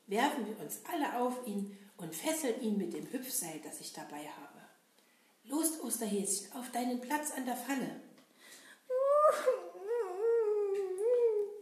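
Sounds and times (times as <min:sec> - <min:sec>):
speech: 0:00.1 - 0:04.7, 0:05.4 - 0:08.0
person crying in a children's Easter bunny play: 0:08.9 - 0:11.6.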